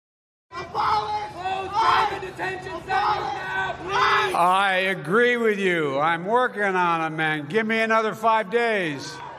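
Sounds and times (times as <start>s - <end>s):
protest crowd chanting slogans: 0.5s - 4.4s
speech: 4.4s - 9.3s.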